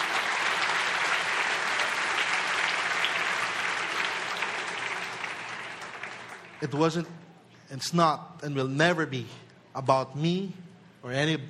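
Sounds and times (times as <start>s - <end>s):
large group clapping: 0.0s - 7.0s
speech: 6.6s - 11.4s.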